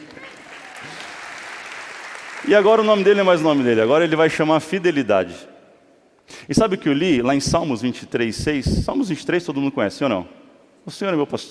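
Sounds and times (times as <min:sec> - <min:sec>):
audience applause: 0:00.0 - 0:03.7
speech: 0:02.4 - 0:05.6, 0:06.5 - 0:11.4.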